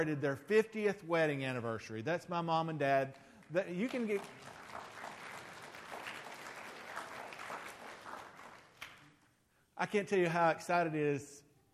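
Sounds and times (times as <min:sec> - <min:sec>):
speech: 0:00.0 - 0:04.9, 0:09.8 - 0:11.4
audience clapping in church: 0:03.1 - 0:09.3.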